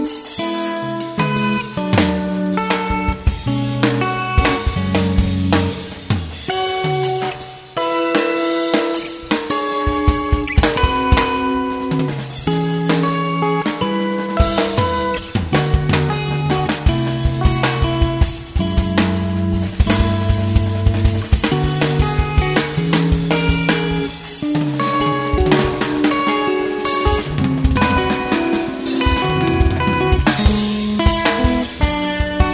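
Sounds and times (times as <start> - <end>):
clean overdriven guitar through a Fryette Two Fifty Two amplifier: 0.0 - 32.5.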